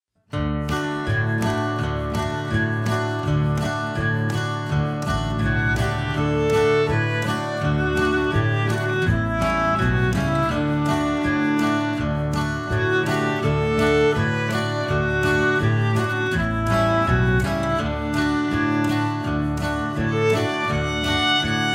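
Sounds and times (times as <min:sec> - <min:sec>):
violin: 0:00.6 - 0:21.7.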